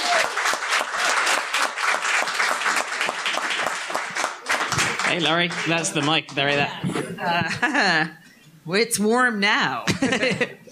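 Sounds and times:
audience applause greeting a comedian onto the stage: 0.0s - 7.0s
crowd noise: 0.0s - 8.1s
speech: 5.1s - 10.6s
laughter: 6.9s - 8.2s, 9.9s - 10.6s.

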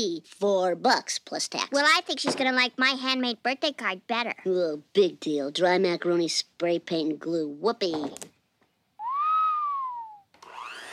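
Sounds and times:
speech: 0.0s - 8.3s
electric mixer motor turning with stuck beaters: 10.4s - 10.9s.

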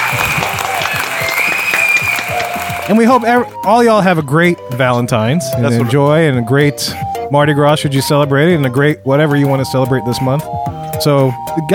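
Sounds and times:
round of applause: 0.0s - 3.3s
speech: 2.9s - 11.7s.

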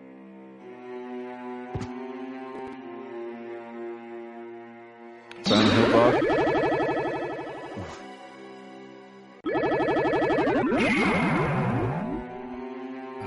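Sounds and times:
speech: 5.5s - 6.6s
video game teleportation sound effect: 5.5s - 8.0s, 9.5s - 12.4s.

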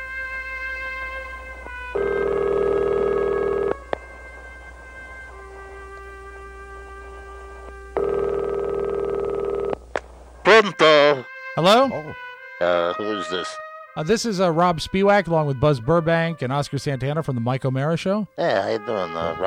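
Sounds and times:
Skype call ringing: 2.0s - 3.8s, 8.0s - 9.8s
speech: 10.6s - 19.4s.

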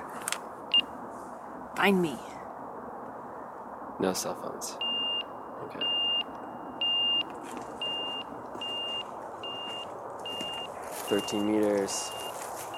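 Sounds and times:
rushing noise: 0.0s - 12.7s
speech: 1.8s - 2.3s, 4.0s - 5.0s, 5.7s - 5.9s, 11.1s - 12.2s
avalanche transceiver beeping during search: 4.8s - 12.7s.

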